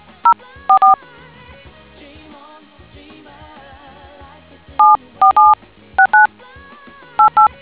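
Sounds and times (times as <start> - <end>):
DTMF tones: 4.8 - 6.3.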